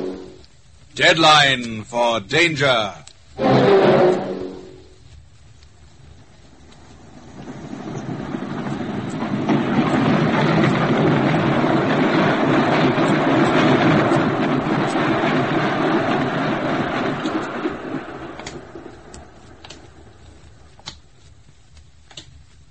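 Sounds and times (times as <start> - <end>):
train horn blast: 0.0 - 0.5, 3.4 - 5.0
train passing through a station: 0.0 - 20.8
speech: 1.0 - 4.3.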